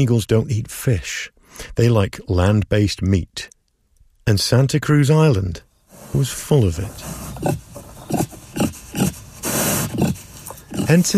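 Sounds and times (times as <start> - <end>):
speech: 0.0 - 3.6, 4.2 - 9.1, 10.9 - 11.1
feral pig grunting: 5.9 - 11.1.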